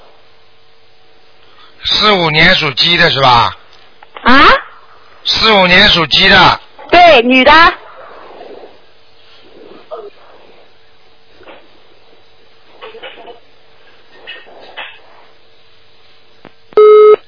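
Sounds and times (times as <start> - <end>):
speech: 1.9 - 3.6, 5.3 - 7.8
telephone busy tone after call disconnects: 16.8 - 17.2.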